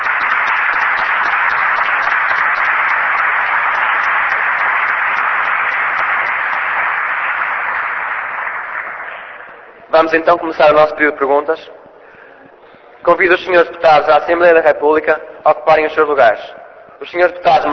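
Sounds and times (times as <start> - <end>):
crowd applause: 0.0 - 10.2
speech: 10.0 - 11.8, 13.1 - 17.7.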